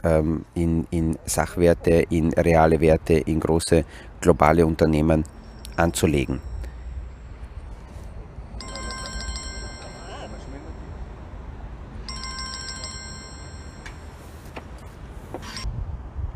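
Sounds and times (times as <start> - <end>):
speech: 0.0 - 6.5
telephone ringing with trilling electronic ring: 8.6 - 11.4, 12.0 - 14.4.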